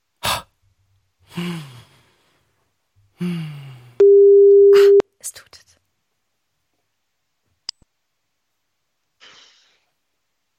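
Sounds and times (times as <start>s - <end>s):
speech: 1.4s - 1.8s, 3.2s - 3.6s
phone call tones after pressing call: 4.0s - 5.0s.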